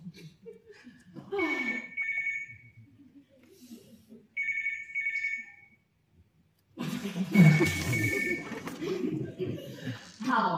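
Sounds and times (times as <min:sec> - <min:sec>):
laughter: 0:00.0 - 0:01.8, 0:06.8 - 0:10.2
telephone ringing: 0:01.6 - 0:02.7, 0:04.4 - 0:05.7, 0:07.4 - 0:08.8.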